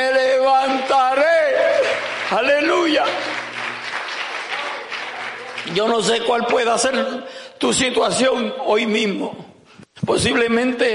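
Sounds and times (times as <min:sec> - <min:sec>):
audience applause: 0:00.6 - 0:06.4
speech: 0:02.3 - 0:03.4, 0:05.6 - 0:09.5, 0:10.1 - 0:10.9.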